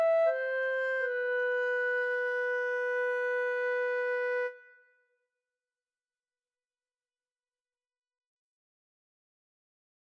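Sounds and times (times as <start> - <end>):
flute playing: 0.0 - 4.6.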